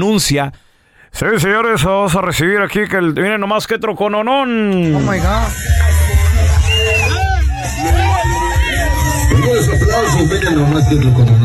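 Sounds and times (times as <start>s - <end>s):
speech: 0.0s - 6.1s, 10.0s - 11.4s
party crowd cheering: 4.8s - 11.4s.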